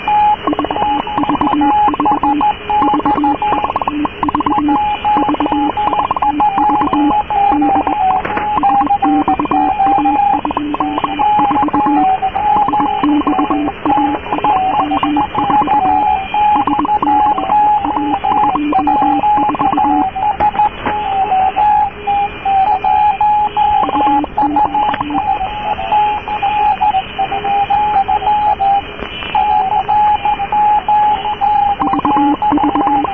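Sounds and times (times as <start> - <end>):
radio interference from other morse code stations: 0.0 - 21.1, 23.7 - 25.4, 31.8 - 33.1
Haifa Radio 4XO morse code CW signal from 1983: 0.0 - 33.1.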